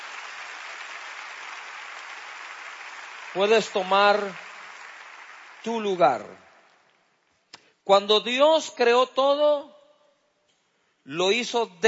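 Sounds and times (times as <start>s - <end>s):
audience applauding: 0.0s - 6.9s
speech: 3.3s - 4.4s, 5.6s - 6.4s, 7.9s - 9.7s, 11.1s - 11.8s.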